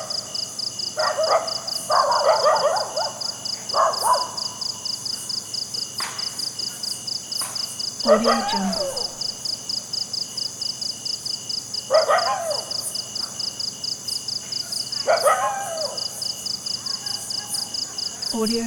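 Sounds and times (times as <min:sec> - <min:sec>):
cricket trilling: 0:00.0 - 0:18.6
dog yelping barks: 0:00.9 - 0:04.6, 0:08.0 - 0:09.4, 0:11.9 - 0:13.4, 0:14.6 - 0:18.3
speech: 0:01.0 - 0:02.8, 0:08.0 - 0:09.0, 0:18.4 - 0:18.6.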